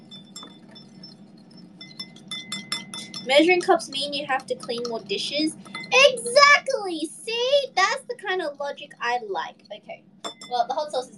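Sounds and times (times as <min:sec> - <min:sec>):
small whisk clinking in a bowl: 0:00.0 - 0:06.2, 0:09.6 - 0:10.8
low steady hum: 0:00.0 - 0:11.1
speech: 0:03.2 - 0:11.1.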